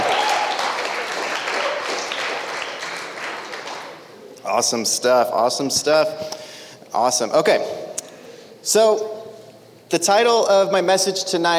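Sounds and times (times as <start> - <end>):
crowd applauding: 0.0 - 4.0
speech: 4.6 - 7.8, 8.6 - 9.2, 9.9 - 11.5.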